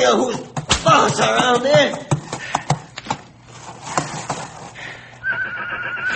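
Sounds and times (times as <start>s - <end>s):
speech: 0.0s - 2.1s
young horse neighing: 5.2s - 6.1s.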